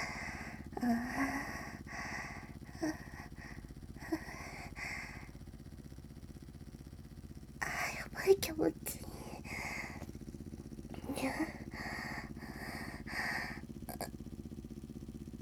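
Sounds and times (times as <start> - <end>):
woman moaning with suction vibrator: 0.0 - 5.3, 7.6 - 10.0, 10.9 - 14.1
suction vibrator buzzing: 0.0 - 15.4.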